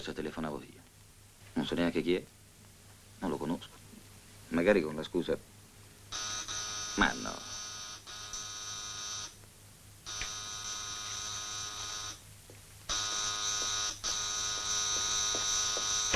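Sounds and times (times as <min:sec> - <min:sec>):
speech: 0:00.0 - 0:00.9, 0:01.6 - 0:02.4, 0:03.2 - 0:03.8, 0:04.5 - 0:05.5, 0:07.0 - 0:07.5
harsh electric doorbell buzzing: 0:06.1 - 0:09.3, 0:10.1 - 0:12.2, 0:12.9 - 0:16.1.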